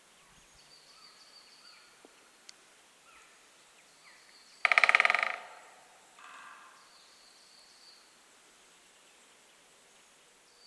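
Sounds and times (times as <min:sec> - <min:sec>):
Great spotted woodpecker drumming: 0:04.6 - 0:06.5.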